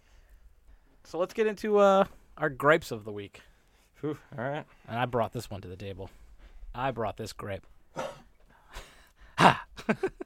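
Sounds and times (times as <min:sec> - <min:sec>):
speech: 0:01.1 - 0:06.2, 0:06.8 - 0:08.1, 0:09.4 - 0:10.2
breathy throat sounds: 0:07.9 - 0:09.7
quick sharp cough: 0:08.0 - 0:08.3.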